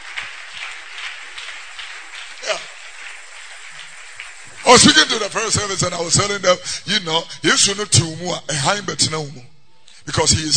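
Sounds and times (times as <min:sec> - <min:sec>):
crowd clapping hands: 0:00.0 - 0:06.4
speech: 0:04.7 - 0:09.5, 0:10.1 - 0:10.5.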